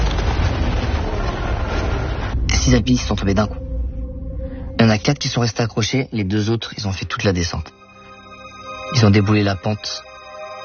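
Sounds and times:
mountain snow cornice collapsing: 0.0 - 2.4
speech: 2.6 - 3.6, 4.8 - 7.8, 8.9 - 10.1.

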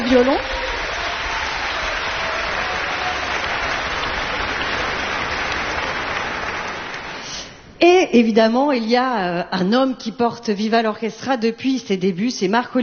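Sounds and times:
audience applause: 0.0 - 7.4
speech: 0.1 - 0.6, 8.1 - 12.8.

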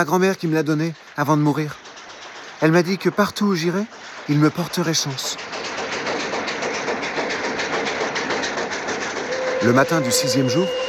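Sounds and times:
speech: 0.0 - 1.8, 2.6 - 5.5, 9.6 - 10.8
train running on rails: 0.0 - 10.8.

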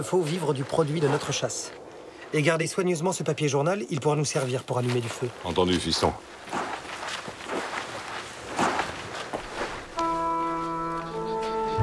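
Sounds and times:
crunching footsteps of people walking: 0.0 - 2.6, 3.8 - 11.8
speech: 0.0 - 6.6
droning horn-like chord: 10.0 - 11.8.

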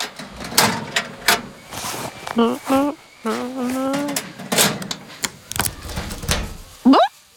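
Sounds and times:
small locker shut and locked with a key in a swimming-pool changing area: 0.0 - 1.8, 3.3 - 6.8
speech: 2.4 - 3.4.

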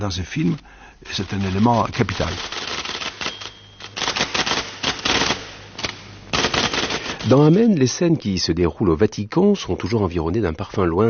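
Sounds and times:
speech: 0.0 - 2.7, 7.2 - 11.0
typewriter clacking: 0.0 - 7.7
low steady hum: 0.0 - 11.0.

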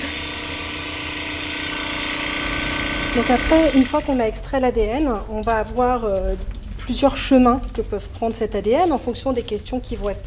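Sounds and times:
bead mill homogenizer running at full speed: 0.0 - 4.2
speech: 3.1 - 10.2.

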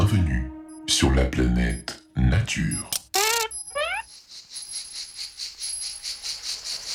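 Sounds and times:
speech: 0.1 - 3.0
cicadas singing: 3.2 - 6.9.

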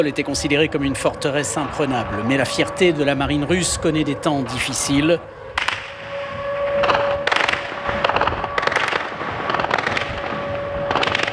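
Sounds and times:
speech: 0.0 - 5.4
anti-aircraft fire at a low-flying drone: 0.0 - 11.3.

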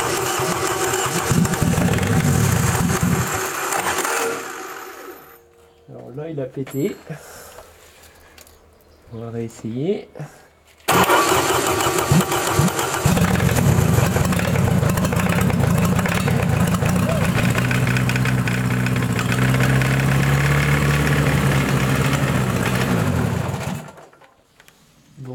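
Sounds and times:
engine starting and idling unevenly: 0.0 - 5.4, 10.9 - 24.1
speech: 6.4 - 7.4, 9.1 - 10.4.

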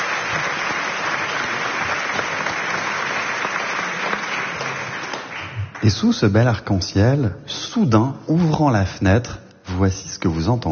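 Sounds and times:
applause: 0.0 - 6.2
speech: 5.8 - 10.7.

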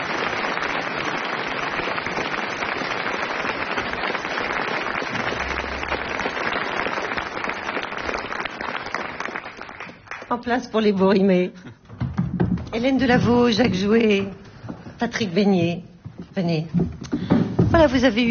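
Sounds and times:
audience applause: 0.0 - 10.3
speech: 10.3 - 11.8, 12.7 - 14.4, 15.0 - 17.0, 17.7 - 18.3.

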